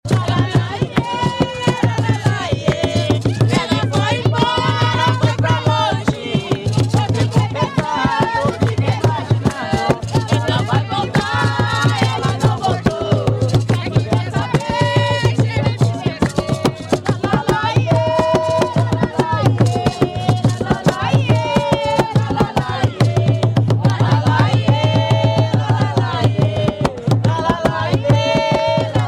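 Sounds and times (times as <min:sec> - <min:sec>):
jongo music: 0:00.0 - 0:29.0.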